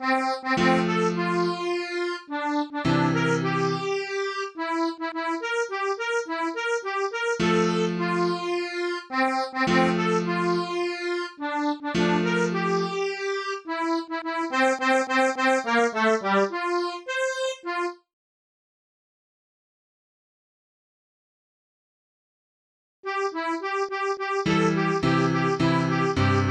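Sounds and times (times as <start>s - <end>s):
MIDI music: 0.0s - 18.0s, 23.1s - 26.4s.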